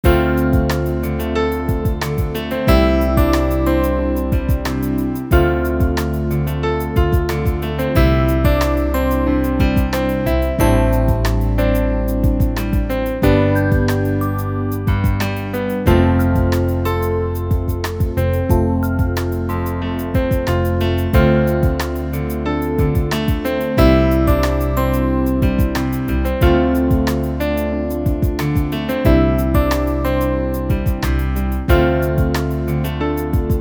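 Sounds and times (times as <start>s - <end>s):
orchestrated piano music: 0.0s - 33.5s.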